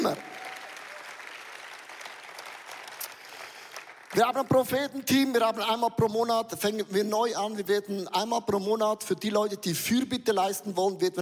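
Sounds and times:
speech: 0.0s - 0.4s, 4.1s - 11.2s
audience applause: 0.0s - 4.4s.

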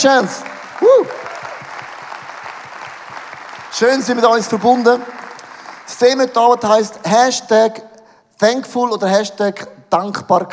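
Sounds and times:
speech: 0.0s - 1.1s, 3.8s - 5.2s, 5.9s - 10.5s
crowd applause: 0.0s - 6.6s.

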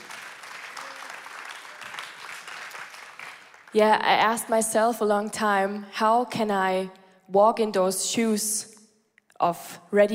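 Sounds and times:
large audience applause: 0.0s - 3.8s
speech: 3.7s - 8.7s, 9.4s - 10.1s.

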